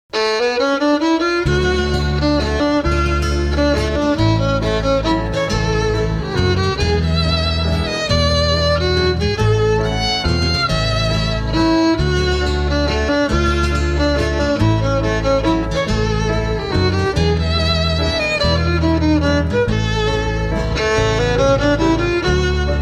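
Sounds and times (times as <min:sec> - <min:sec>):
instrumental waltz quadrille: 0:00.1 - 0:22.8.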